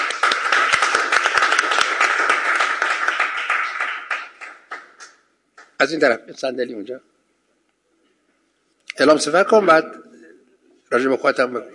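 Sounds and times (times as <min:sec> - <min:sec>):
crowd clapping: 0:00.0 - 0:05.8
speech: 0:05.8 - 0:07.1, 0:09.0 - 0:10.1, 0:10.9 - 0:11.7.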